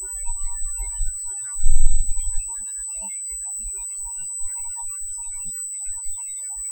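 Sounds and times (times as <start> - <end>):
filtered noise: 0.1 - 2.6, 4.0 - 6.2.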